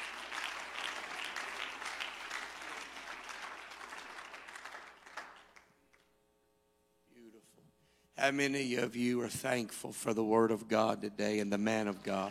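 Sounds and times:
audience clapping hands in praise: 0:00.0 - 0:05.8
speech: 0:08.2 - 0:12.2.

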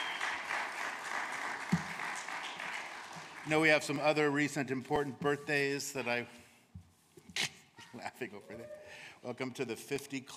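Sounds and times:
audience applause: 0:00.0 - 0:03.9
speech: 0:03.5 - 0:06.4, 0:08.0 - 0:10.3.

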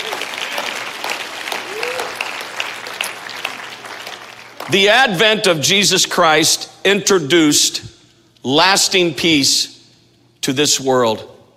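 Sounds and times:
audience clapping hands: 0:00.0 - 0:05.2
speech: 0:04.7 - 0:09.7, 0:10.4 - 0:11.3.

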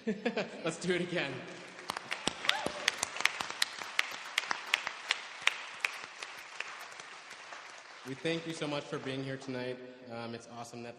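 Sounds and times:
speech: 0:00.0 - 0:01.6, 0:08.1 - 0:10.9
audience clapping: 0:01.1 - 0:09.7.

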